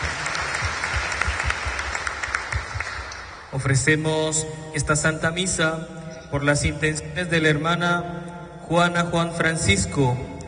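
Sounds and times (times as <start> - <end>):
audience clapping hands: 0.0 - 3.5
speech: 3.5 - 10.4.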